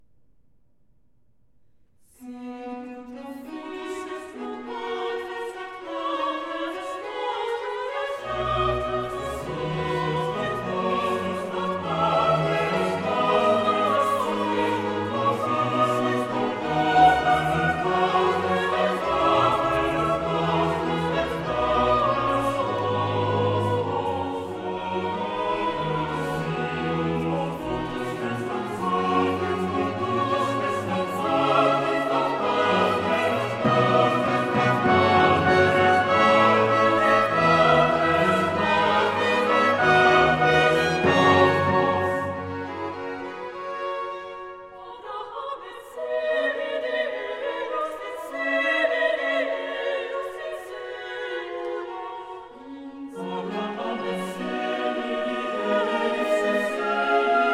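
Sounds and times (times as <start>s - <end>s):
choral canticle in C major: 1.7s - 57.5s.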